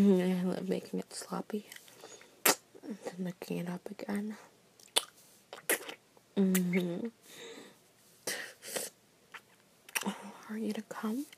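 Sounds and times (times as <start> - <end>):
speech: 0.0 - 1.9, 2.9 - 4.5, 6.4 - 7.5, 10.0 - 11.3
person spitting saliva to lubricate the throat: 2.4 - 2.7, 4.8 - 7.1.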